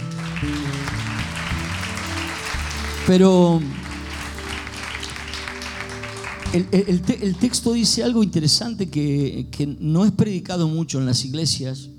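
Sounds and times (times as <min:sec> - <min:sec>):
audience applause: 0:00.0 - 0:07.6
speech: 0:03.1 - 0:03.8, 0:06.5 - 0:11.9.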